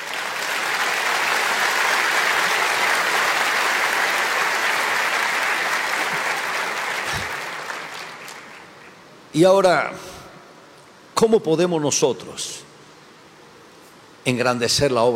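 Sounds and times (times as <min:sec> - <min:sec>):
audience applauding: 0:00.0 - 0:09.1
speech: 0:09.4 - 0:10.1, 0:11.2 - 0:12.6, 0:14.2 - 0:15.1.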